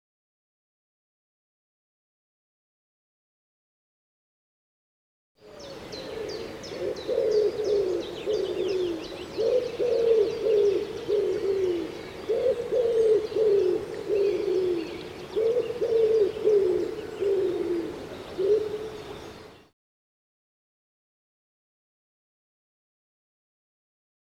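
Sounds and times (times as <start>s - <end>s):
Common Wood Pigeon cooing: 5.4s - 19.4s
other birds chirping faintly: 5.4s - 19.7s.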